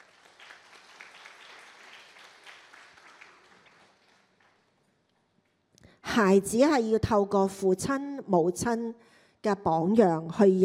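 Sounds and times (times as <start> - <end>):
audience applause: 0.0 - 4.8
speech: 6.2 - 10.6.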